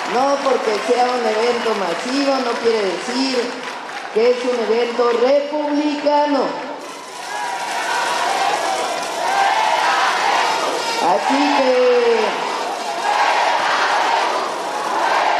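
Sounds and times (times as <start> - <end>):
speech: 0.1 - 6.6, 11.1 - 12.4
crowd shouting: 6.8 - 15.3.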